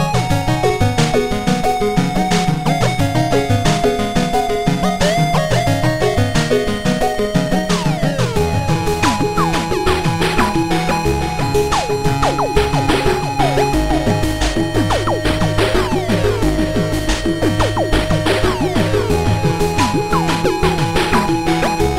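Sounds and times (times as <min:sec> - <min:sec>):
8-bit music: 0:00.0 - 0:21.9.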